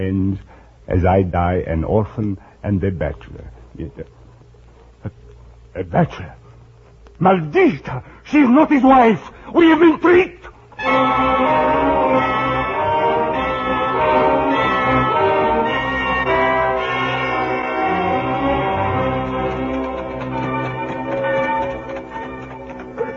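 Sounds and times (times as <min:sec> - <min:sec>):
speech: 0:00.0 - 0:04.2, 0:05.8 - 0:06.4, 0:07.2 - 0:11.9
prison alarm bell ringing: 0:10.8 - 0:23.1.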